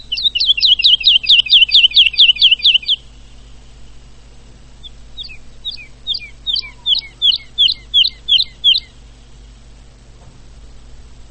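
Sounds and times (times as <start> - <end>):
woodlark giving soft whistled notes and slurred phrases: 0.0 - 3.5, 4.8 - 9.0.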